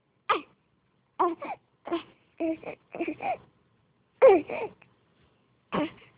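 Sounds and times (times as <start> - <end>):
hungry baby girl crying: 1.2 - 3.4, 4.2 - 4.7.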